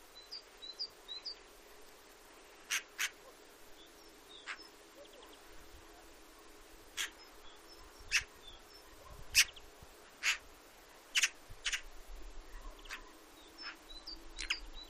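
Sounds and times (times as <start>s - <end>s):
Eurasian magpie harsh calls and rattling chatter: 2.7s - 3.2s, 4.4s - 4.7s, 7.0s - 7.2s, 8.1s - 8.3s, 9.3s - 9.6s, 10.2s - 10.4s, 11.1s - 11.8s.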